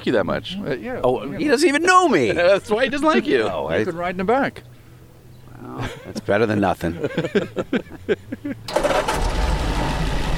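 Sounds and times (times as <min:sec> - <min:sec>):
speech: 0:00.0 - 0:04.7, 0:05.6 - 0:09.1
laughter: 0:01.9 - 0:03.9, 0:05.6 - 0:08.7
old vehicle engine cranking and firing for its first start of the day: 0:08.7 - 0:10.3.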